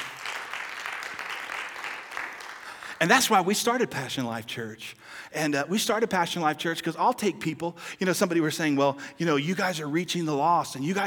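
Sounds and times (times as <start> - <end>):
audience applause: 0.0 - 3.0
speech: 3.0 - 11.0.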